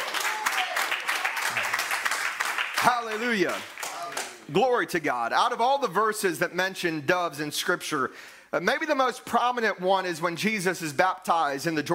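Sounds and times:
audience clapping hands in praise: 0.0 - 4.6
speech: 2.8 - 3.8, 4.5 - 11.9.

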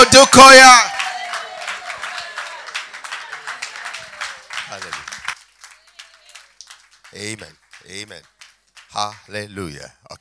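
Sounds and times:
person giving a rising shout: 0.0 - 0.9
large crowd applauding in standing ovation: 0.0 - 9.4
speech: 0.1 - 0.9, 7.1 - 10.2.

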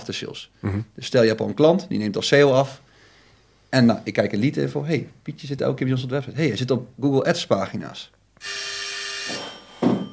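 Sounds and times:
speech: 0.0 - 2.9, 3.7 - 8.8
bell ringing: 8.4 - 10.1.

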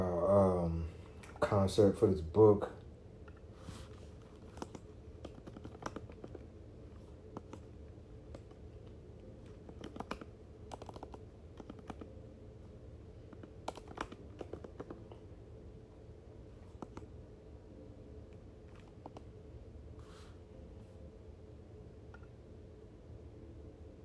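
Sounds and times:
speech: 1.4 - 2.8
someone typing names on a computer keyboard: 4.4 - 6.4, 7.3 - 7.7, 9.6 - 12.2, 13.3 - 15.1.

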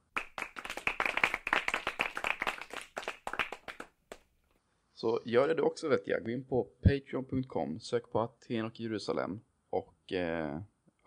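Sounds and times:
applause: 0.0 - 4.2
speech: 5.0 - 11.0.

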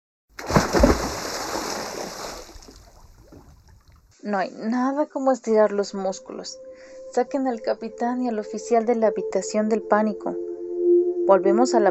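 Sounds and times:
bodies splashing into the sea: 0.4 - 4.0
speech: 4.2 - 10.5, 11.2 - 11.9.

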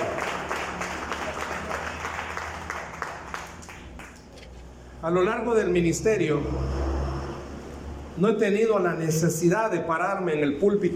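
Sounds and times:
audience applause: 0.0 - 4.2
speech: 5.0 - 6.9, 8.2 - 10.9.

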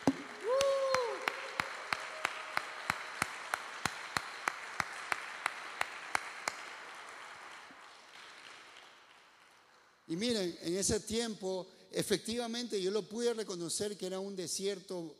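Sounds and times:
audience applause: 0.0 - 9.8
speech: 10.1 - 15.1.

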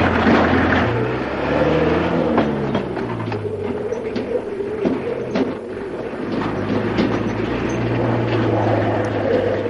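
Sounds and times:
truck engine laboring up a gentle rise on a rural road: 0.0 - 9.6.

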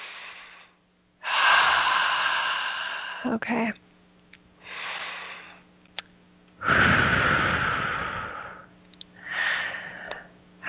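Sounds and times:
deep breath during a relaxation exercise: 0.0 - 3.3, 4.6 - 5.6, 6.6 - 10.6
speech: 3.2 - 3.8.

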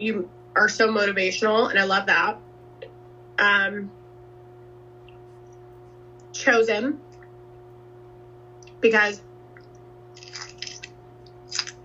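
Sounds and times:
speech: 0.0 - 2.4, 3.4 - 4.0, 6.3 - 7.0, 8.8 - 9.3
steady low electrical hum: 0.0 - 11.8
chewing while eating dinner: 9.6 - 11.8.

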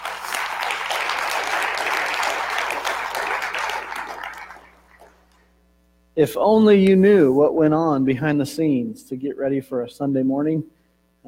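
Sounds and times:
crowd applause: 0.0 - 5.4
speech: 6.2 - 11.2.

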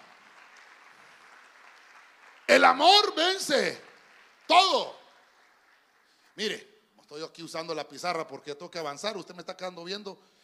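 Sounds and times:
audience clapping hands: 0.0 - 6.7
speech: 2.5 - 3.9, 4.5 - 5.0, 6.4 - 10.4.

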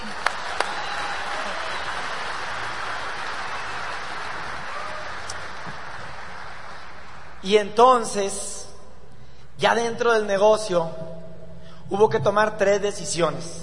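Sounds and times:
audience applause: 0.0 - 7.4
speech: 7.5 - 8.5, 9.6 - 11.1, 11.9 - 13.6.

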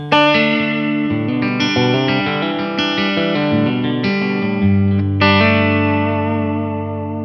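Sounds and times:
overdriven electric guitar through bridge humbucker pickup strumming chords: 0.0 - 7.2.

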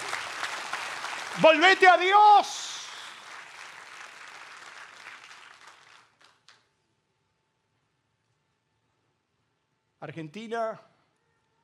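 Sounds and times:
audience applauding: 0.0 - 6.6
speech: 1.4 - 2.6, 10.0 - 10.9.

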